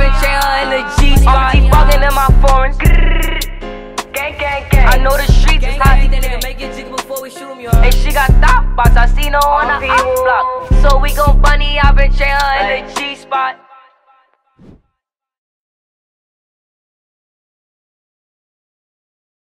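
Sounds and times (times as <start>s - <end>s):
beatbox remix: 0.0s - 4.2s, 4.8s - 13.2s.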